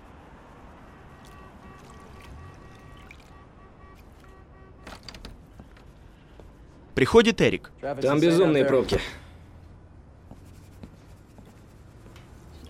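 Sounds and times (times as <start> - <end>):
running water splashing while washing dishes at home: 1.1 - 3.5
speech: 7.0 - 9.2.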